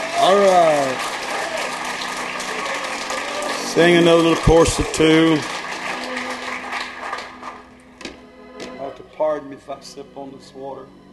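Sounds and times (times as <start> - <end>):
audience applause: 0.0 - 7.8
speech: 3.8 - 5.6, 9.6 - 11.1.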